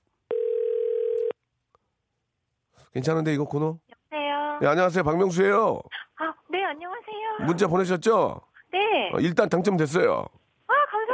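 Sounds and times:
telephone dial tone of outgoing call: 0.3s - 1.4s
speech: 2.9s - 3.9s, 4.6s - 6.0s, 6.7s - 10.4s.

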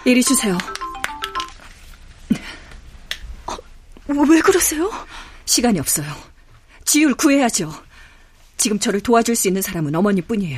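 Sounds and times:
speech: 0.0s - 0.7s, 4.1s - 6.3s, 6.9s - 7.8s, 8.6s - 10.5s
telephone ringing with incoming call: 0.2s - 1.7s.

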